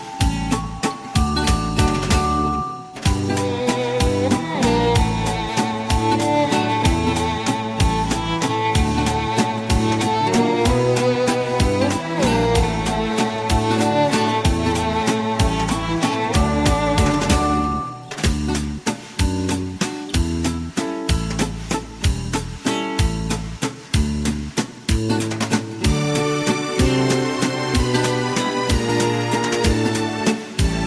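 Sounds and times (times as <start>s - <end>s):
instrumental Viennese waltz karaoke backing track: 0.0s - 30.8s.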